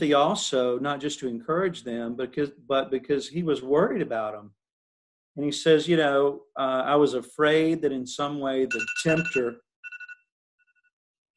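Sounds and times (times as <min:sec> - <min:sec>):
speech: 0:00.0 - 0:04.6, 0:05.4 - 0:09.6
phone alarm ringing: 0:08.7 - 0:10.9.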